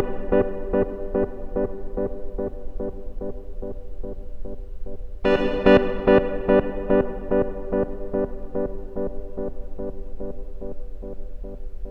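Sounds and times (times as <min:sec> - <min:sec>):
organ through delay and reverb effects, direct line recording: 0:00.0 - 0:11.9.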